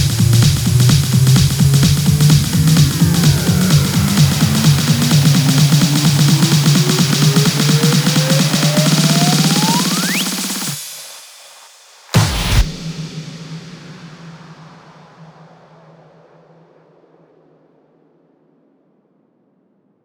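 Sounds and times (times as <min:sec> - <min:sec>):
electro house drum fills: 0:00.0 - 0:11.2, 0:12.2 - 0:15.8.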